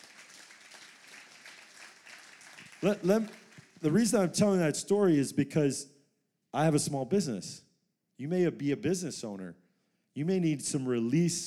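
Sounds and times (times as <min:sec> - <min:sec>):
audience applause at a talk: 0:00.0 - 0:04.2
speech: 0:02.8 - 0:05.9, 0:06.5 - 0:07.6, 0:08.2 - 0:09.6, 0:10.2 - 0:11.4.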